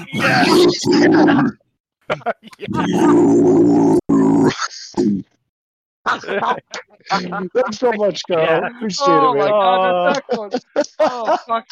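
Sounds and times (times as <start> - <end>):
man letting out death metal growls: 0.0 - 1.6, 2.7 - 5.4
speech: 0.1 - 5.3, 6.0 - 11.7
laughter: 2.1 - 3.2, 6.1 - 11.7.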